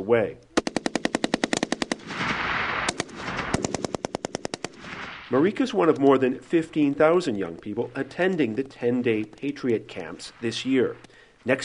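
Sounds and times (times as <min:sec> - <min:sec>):
speech: 0:00.1 - 0:00.5, 0:05.3 - 0:11.6
Kalashnikov rifle automatic gunfire: 0:00.6 - 0:05.4.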